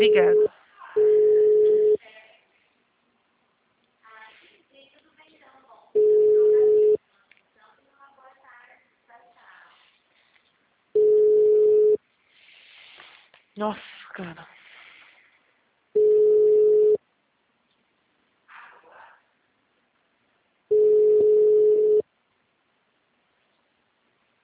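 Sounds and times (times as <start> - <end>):
speech: 0.0 - 0.6
telephone ringing tone during a call transfer: 0.0 - 2.0, 6.0 - 7.0, 11.0 - 12.0, 16.0 - 17.0, 20.7 - 22.0.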